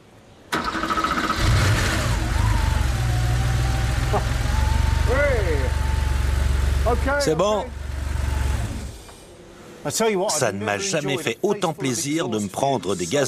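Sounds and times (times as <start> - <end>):
3-litre car engine starting and running: 0.5 - 9.4
speech: 6.9 - 7.8, 9.8 - 13.2.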